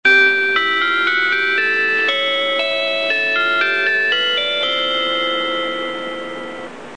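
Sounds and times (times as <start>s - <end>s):
train chime: 0.1s - 6.9s.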